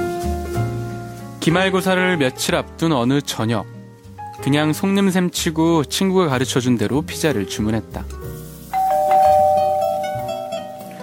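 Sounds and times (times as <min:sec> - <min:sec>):
soft music: 0:00.0 - 0:11.0
speech: 0:01.4 - 0:03.8, 0:04.4 - 0:08.2
doorbell chime: 0:08.7 - 0:11.0.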